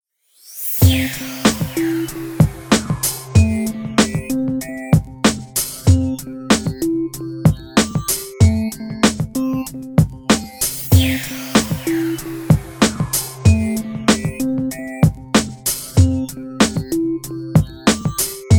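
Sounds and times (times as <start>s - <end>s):
mellow music bed: 0.8s - 18.5s.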